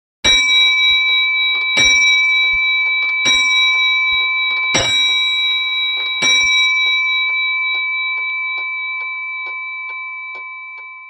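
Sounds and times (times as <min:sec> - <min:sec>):
clock chiming the hours: 0:00.2 - 0:11.0.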